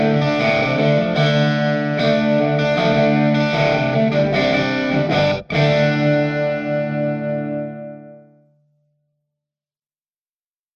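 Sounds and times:
electric guitar busking in a subway for tips: 0:00.0 - 0:08.6.

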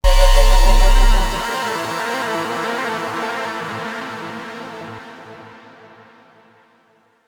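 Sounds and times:
music sting: 0:00.0 - 0:01.8.

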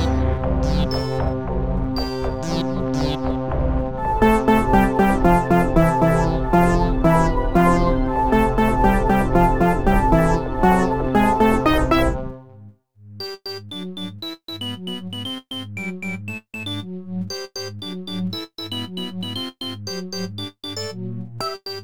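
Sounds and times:
sad background music: 0:00.0 - 0:12.5.

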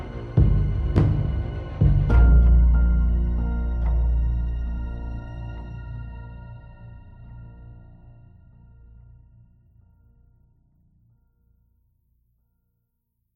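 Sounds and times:
tense music loop: 0:00.0 - 0:10.5.

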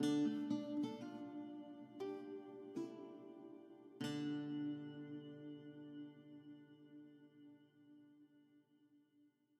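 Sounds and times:
harp playing: 0:00.0 - 0:06.6.

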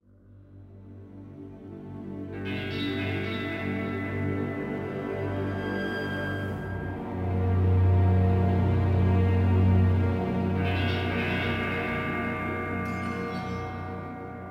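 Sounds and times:
spooky sound: 0:02.4 - 0:14.4.

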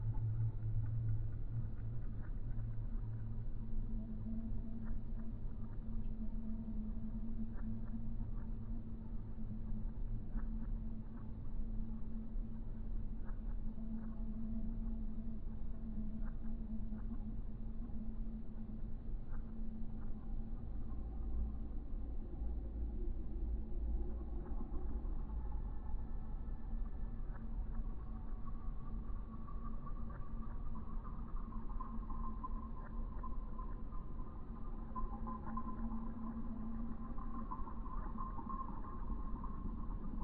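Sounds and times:
ambient ambience loop: 0:00.0 - 0:40.2.

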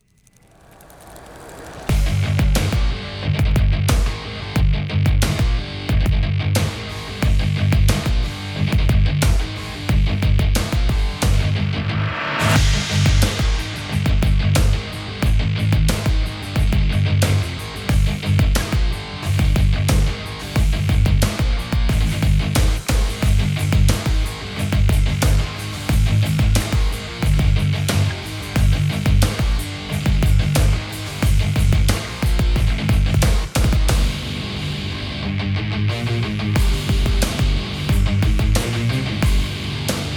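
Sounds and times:
bass: 0:00.0 - 0:40.1.

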